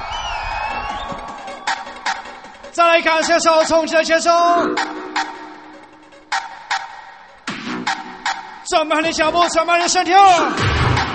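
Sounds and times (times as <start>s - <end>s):
crowd screaming: 0.0s - 2.6s
speech: 2.8s - 4.9s, 8.7s - 11.0s.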